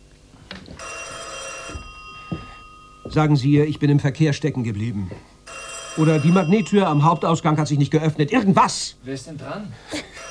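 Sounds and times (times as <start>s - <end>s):
telephone ringing: 0.8s - 4.0s, 5.4s - 8.3s
speech: 3.1s - 5.3s, 6.0s - 10.1s.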